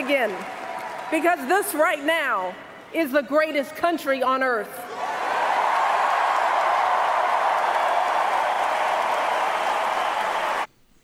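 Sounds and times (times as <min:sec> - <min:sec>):
audience applauding Michelle Obama's speech: 0:00.0 - 0:02.0, 0:04.9 - 0:10.7
speech: 0:00.1 - 0:04.9.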